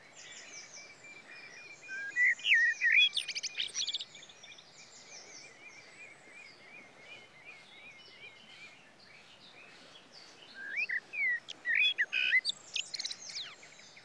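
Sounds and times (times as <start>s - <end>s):
common blackbird singing: 1.8s - 4.1s, 10.5s - 13.7s.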